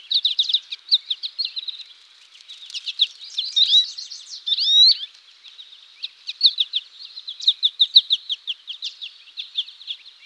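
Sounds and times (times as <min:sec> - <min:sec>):
bird: 0:00.0 - 0:10.2.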